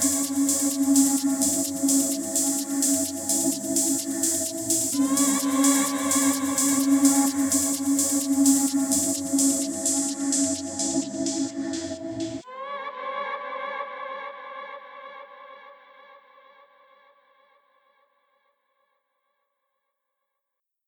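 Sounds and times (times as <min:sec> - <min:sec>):
ambience: 0:00.0 - 0:12.5.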